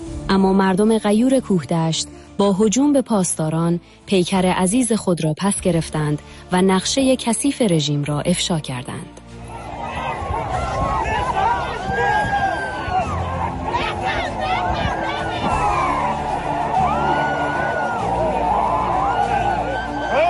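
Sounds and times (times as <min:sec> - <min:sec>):
speech: 0:00.3 - 0:09.2
large crowd shouting and chanting slogans: 0:09.5 - 0:20.2.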